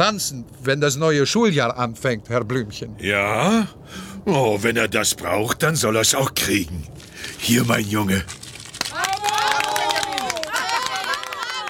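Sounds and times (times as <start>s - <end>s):
speech: 0.0s - 8.4s
scattered clapping: 8.7s - 11.6s
crowd cheering with whoops: 8.8s - 11.6s.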